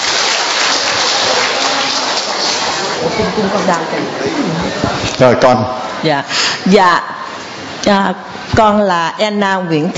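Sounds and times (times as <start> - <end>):
crowd applauding: 0.0 - 4.2
speech: 3.1 - 7.2, 7.8 - 9.9.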